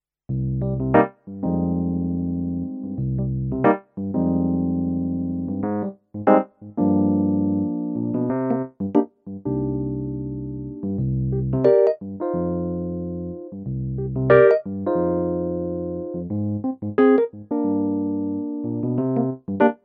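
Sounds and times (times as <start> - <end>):
Kross electric piano: 0.3 - 19.8.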